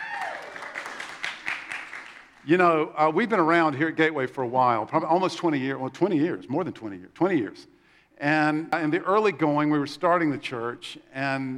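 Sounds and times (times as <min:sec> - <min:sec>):
applause: 0:00.0 - 0:02.5
speech: 0:02.4 - 0:11.5.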